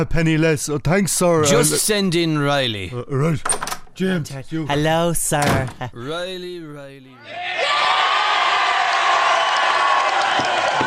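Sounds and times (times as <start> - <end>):
speech: 0.0 - 7.9
crowd cheering at golf win: 7.2 - 10.8.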